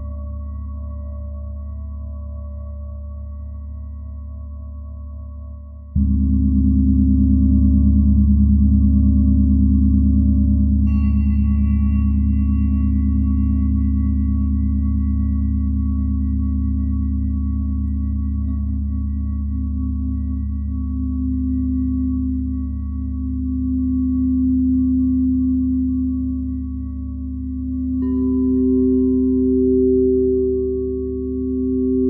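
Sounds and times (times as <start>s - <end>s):
deep steady hum: 0.0s - 32.0s
singing bowls ringing: 10.8s - 32.0s.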